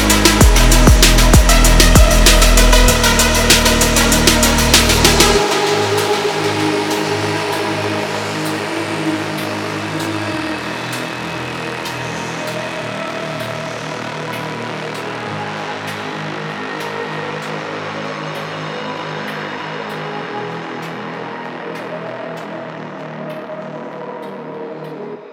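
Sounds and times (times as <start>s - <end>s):
beats: 0.0s - 8.8s.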